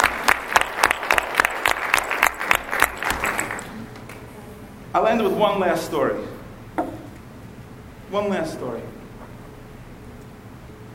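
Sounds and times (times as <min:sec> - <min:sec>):
audience applause: 0:00.0 - 0:04.3
speech: 0:05.0 - 0:06.4, 0:08.1 - 0:09.0.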